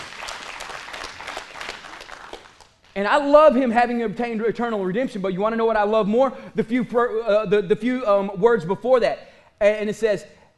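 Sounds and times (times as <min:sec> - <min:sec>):
audience hand clap of praise: 0:00.0 - 0:03.0
speech: 0:03.0 - 0:10.4.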